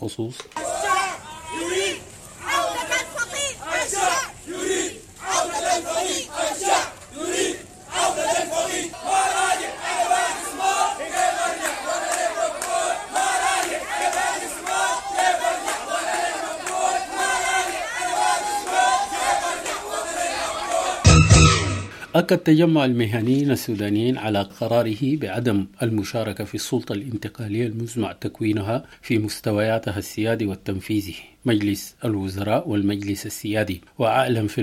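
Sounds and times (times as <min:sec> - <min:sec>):
speech: 0:00.0 - 0:00.7, 0:22.2 - 0:34.6
protest crowd chanting slogans at a solidarity march: 0:00.5 - 0:21.9.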